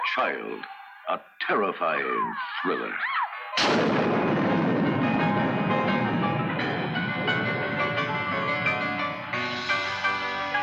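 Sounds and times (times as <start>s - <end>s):
speech: 0.2s - 4.1s
thunder rumbling in film trailer: 3.6s - 10.5s.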